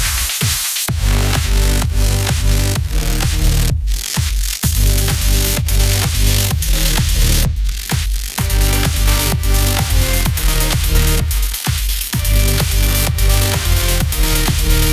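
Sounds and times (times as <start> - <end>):
electronic dance music: 0.0 - 14.9.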